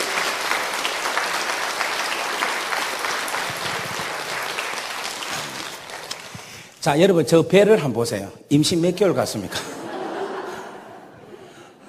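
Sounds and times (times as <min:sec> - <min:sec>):
audience applauding: 0:00.0 - 0:06.7
speech: 0:06.8 - 0:09.7
laughter: 0:09.4 - 0:11.8.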